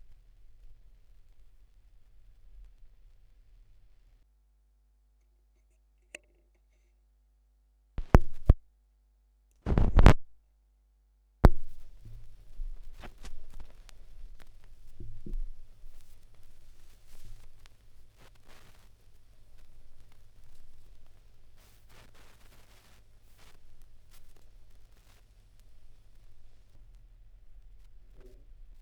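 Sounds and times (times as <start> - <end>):
vinyl record noise at 16 rpm: 0.0 - 4.2, 8.0 - 8.6, 9.6 - 10.3, 11.4 - 28.8.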